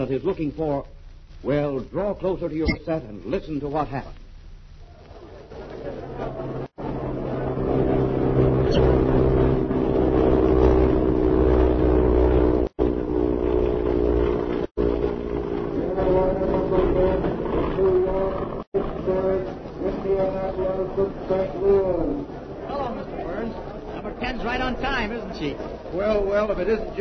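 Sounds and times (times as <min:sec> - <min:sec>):
speech: 0:00.0 - 0:04.2, 0:24.7 - 0:26.9
airliner roaring overhead and coming in to land: 0:06.0 - 0:26.9.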